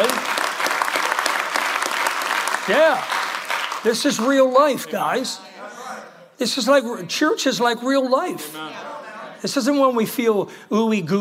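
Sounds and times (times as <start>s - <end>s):
audience applause: 0.0s - 4.5s
speech: 2.7s - 3.2s, 3.8s - 5.5s, 6.4s - 8.8s, 9.4s - 11.1s.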